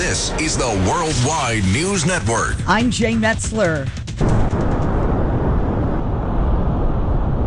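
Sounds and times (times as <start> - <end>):
speech: 0.1 - 4.5
gusty winds of a strong nor'easter on the East Coast: 4.2 - 7.4.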